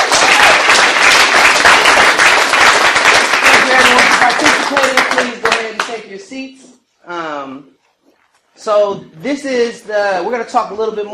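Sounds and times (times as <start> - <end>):
audience applause: 0.0 - 5.9
speech: 8.6 - 11.1.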